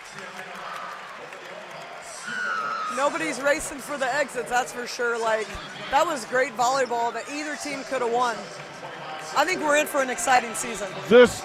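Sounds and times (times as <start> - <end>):
arena crowd clapping: 0.0 - 4.2, 7.3 - 11.4
arena crowd cheering after volleyball match: 0.0 - 11.4
speech: 3.0 - 8.7, 9.3 - 11.4.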